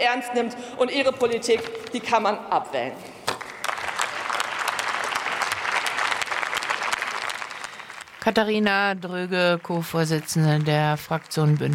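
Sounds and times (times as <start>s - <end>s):
speech: 0.0s - 3.2s, 8.2s - 11.7s
applause in parliament: 3.3s - 11.7s.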